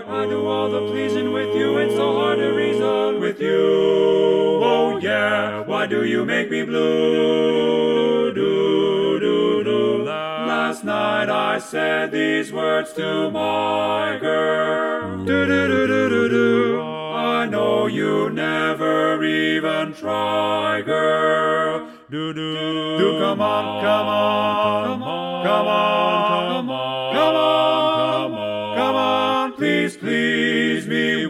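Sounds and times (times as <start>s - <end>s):
baritone singing: 0.0s - 31.2s.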